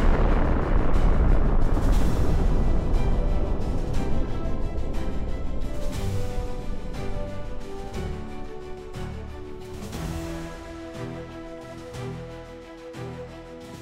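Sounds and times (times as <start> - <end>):
missile launch: 0.0 - 9.0.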